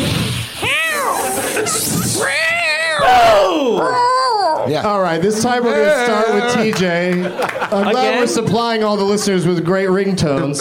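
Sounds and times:
person imitating an angry hissing cat: 0.0 - 3.1
laughter: 1.0 - 2.2, 5.5 - 8.9, 10.2 - 10.5
speech: 3.0 - 10.5.

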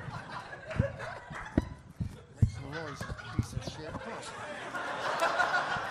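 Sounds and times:
laughter: 0.0 - 5.9
toy monkey shaken hard: 0.7 - 4.1.

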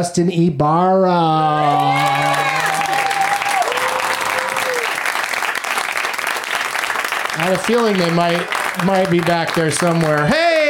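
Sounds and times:
speech: 0.0 - 2.6, 7.4 - 10.5
audience applause: 1.6 - 10.6.

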